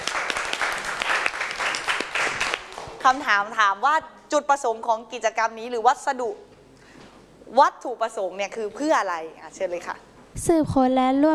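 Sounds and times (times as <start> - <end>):
room of students clapping: 0.0 - 3.2
speech: 3.0 - 6.5, 7.5 - 11.3.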